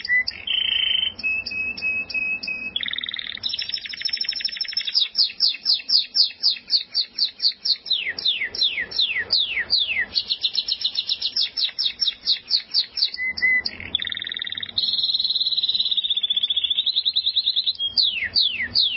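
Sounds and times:
canary-type buzzy trill: 0.0 - 18.9.

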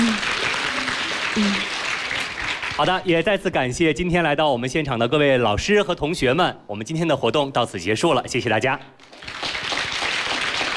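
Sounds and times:
audience applause after a health lecture: 0.0 - 3.1, 9.1 - 10.7
speech: 1.4 - 1.7, 2.8 - 9.4.

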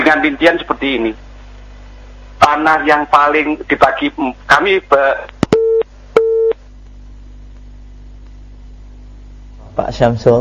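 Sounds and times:
speech: 0.1 - 1.2, 2.5 - 5.4, 9.8 - 10.3
busy tone after a phone-in caller's line disconnects: 5.5 - 6.6.

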